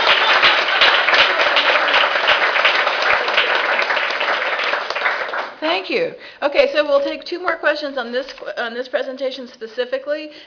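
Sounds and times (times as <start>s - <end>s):
audience applause: 0.0s - 5.6s
speech: 5.8s - 10.4s.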